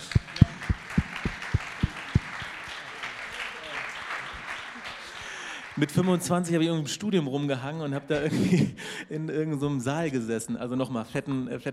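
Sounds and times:
sharp claps: 0:00.0 - 0:06.1
speech: 0:05.8 - 0:11.7.

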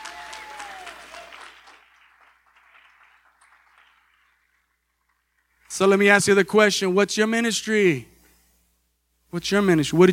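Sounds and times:
audience cheering with a whoop: 0:00.0 - 0:04.4
audience clapping: 0:00.0 - 0:06.1
speech: 0:05.8 - 0:08.1, 0:09.3 - 0:10.1.

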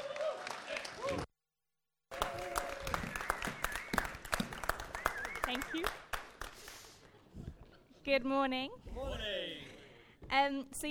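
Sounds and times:
applause at a church service to welcome a speaker: 0:00.0 - 0:01.3, 0:02.1 - 0:07.2
speech: 0:05.7 - 0:06.0, 0:08.1 - 0:09.6, 0:10.3 - 0:10.8.

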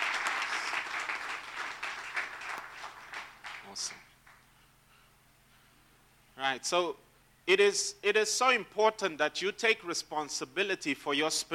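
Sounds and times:
audience applause: 0:00.0 - 0:04.4
speech: 0:03.8 - 0:04.0, 0:06.4 - 0:11.5.

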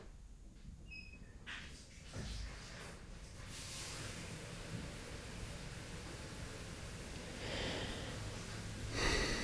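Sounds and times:
running shower spraying water: 0:01.5 - 0:09.4
breathy sounds: 0:07.4 - 0:08.4, 0:08.9 - 0:09.4.

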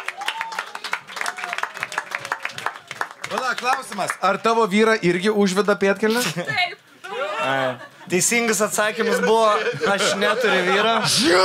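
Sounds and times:
audience clapping at a live stage show: 0:00.0 - 0:04.7
speech: 0:03.5 - 0:06.8, 0:07.4 - 0:11.4
laughter: 0:06.2 - 0:11.4.

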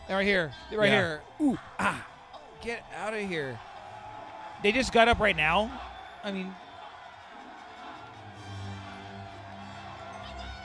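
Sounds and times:
crowd cheering at pod race: 0:00.0 - 0:10.6
speech: 0:00.1 - 0:03.7, 0:04.6 - 0:06.6.

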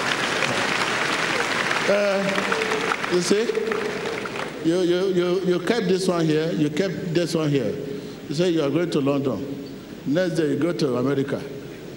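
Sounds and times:
clapping: 0:00.0 - 0:04.6
speech: 0:01.9 - 0:11.6.

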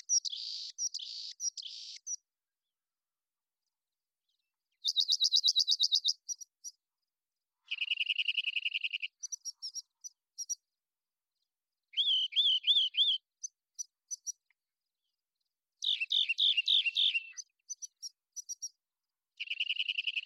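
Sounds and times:
rock wren trilling song: 0:00.0 - 0:02.3, 0:04.3 - 0:06.8, 0:07.6 - 0:10.8, 0:11.4 - 0:14.5, 0:15.8 - 0:18.8, 0:19.4 - 0:20.2.

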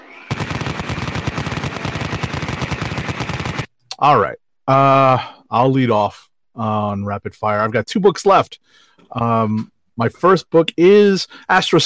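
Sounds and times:
Vulcan rotary cannon firing a sustained burst: 0:00.1 - 0:03.7
speech: 0:04.0 - 0:11.8.

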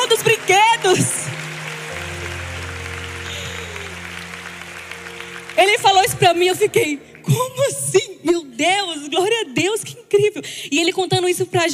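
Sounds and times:
low sustained musical tones: 0:00.0 - 0:07.6
audience applause: 0:00.0 - 0:07.7
speech: 0:00.1 - 0:01.4, 0:05.6 - 0:11.7.

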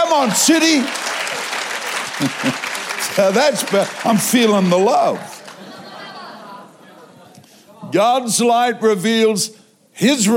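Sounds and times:
audience clapping: 0:00.0 - 0:06.2
speech: 0:00.1 - 0:01.1, 0:02.2 - 0:05.4, 0:07.9 - 0:10.3
laughter: 0:01.9 - 0:03.2, 0:05.2 - 0:07.5.

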